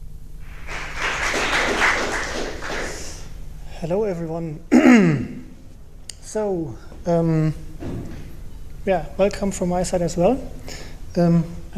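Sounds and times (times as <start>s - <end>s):
audience applause: 0.4s - 3.3s
speech: 3.8s - 5.4s, 6.3s - 8.2s, 8.8s - 11.7s.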